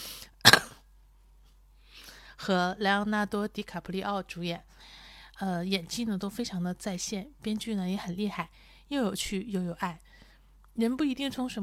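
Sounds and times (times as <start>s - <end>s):
person coughing: 0.4s - 0.8s
speech: 2.4s - 4.7s, 5.4s - 10.1s, 10.8s - 11.6s.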